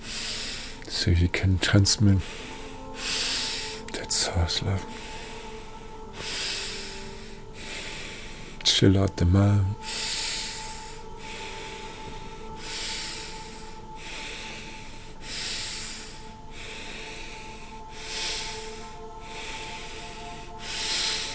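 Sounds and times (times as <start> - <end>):
deep breathing in during breathwork: 0.0 - 0.9, 2.2 - 4.2, 4.8 - 8.6, 9.8 - 21.3
speech: 1.0 - 2.5, 4.4 - 5.1, 8.8 - 9.9.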